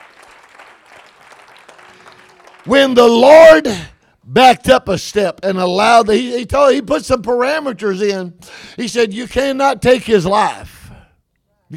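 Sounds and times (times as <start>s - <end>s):
audience clapping hands: 0.0s - 3.3s
speech: 2.6s - 10.8s.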